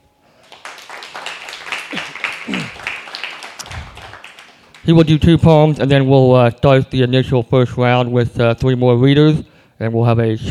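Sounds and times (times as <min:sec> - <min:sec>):
audience applause welcoming a featured poetry reader: 0:00.4 - 0:05.6
speech: 0:04.8 - 0:10.5.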